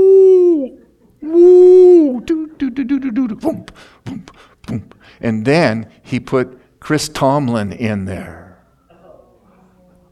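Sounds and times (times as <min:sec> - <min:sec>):
whale song: 0:00.0 - 0:02.2
speech: 0:02.8 - 0:08.4.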